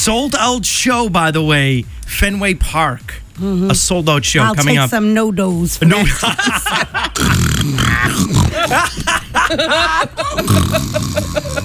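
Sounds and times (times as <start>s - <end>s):
speech: 0.0s - 11.6s
person chuckling: 6.2s - 11.6s
loud exaggerated snoring made by a voice: 7.1s - 8.9s, 10.3s - 11.6s.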